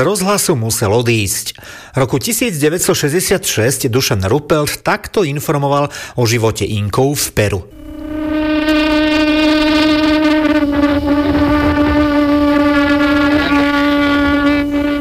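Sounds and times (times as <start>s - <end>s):
speech: 0.0s - 7.9s
pututu conch horn calling llama herd: 7.7s - 14.9s.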